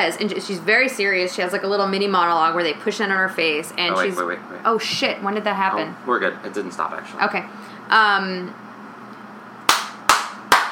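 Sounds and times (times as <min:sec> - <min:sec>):
speech: 0:00.0 - 0:08.6
hand claps as sync slate: 0:09.7 - 0:10.7.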